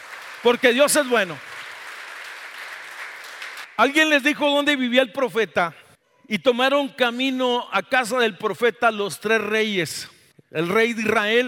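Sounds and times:
audience applauding: 0.0 - 3.8
speech: 0.4 - 1.5, 3.8 - 11.4.

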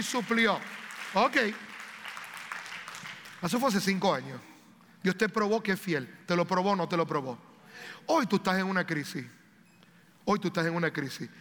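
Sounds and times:
speech: 0.0 - 1.7, 3.4 - 9.4, 10.3 - 11.3
audience applause: 0.0 - 3.4.

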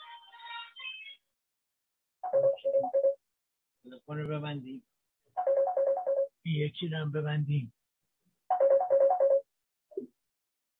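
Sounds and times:
phone ringtone melody: 2.2 - 3.2, 5.4 - 6.4, 8.5 - 9.6
speech: 3.8 - 5.0, 6.4 - 7.8.

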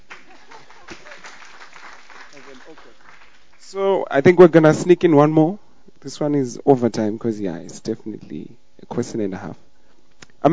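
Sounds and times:
audience clapping: 0.0 - 3.8
speech: 2.7 - 9.7.

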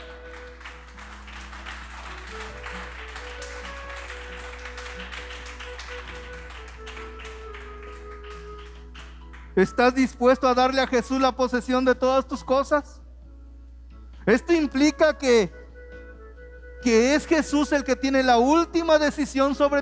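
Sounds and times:
crowd clapping: 0.0 - 11.6
speech: 9.6 - 13.0, 14.3 - 15.6, 16.8 - 19.7.

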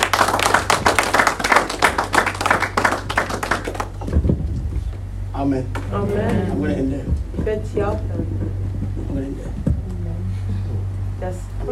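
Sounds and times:
audience clapping hands: 0.0 - 4.2
low hum: 0.0 - 11.6.

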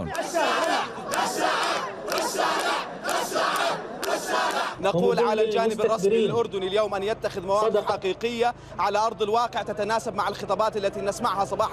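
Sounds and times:
protest crowd chanting slogans: 0.0 - 5.3
speech: 4.8 - 11.7.

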